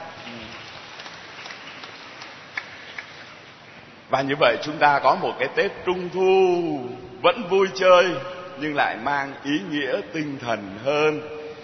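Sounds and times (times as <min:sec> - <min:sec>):
round of applause: 0:00.0 - 0:03.3
speech: 0:04.1 - 0:11.4.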